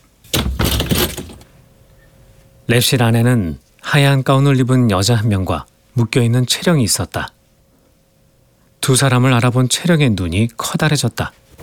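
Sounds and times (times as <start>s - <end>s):
door flung open into a lab: 0.3s - 1.5s
speech: 2.7s - 7.4s, 8.8s - 11.4s.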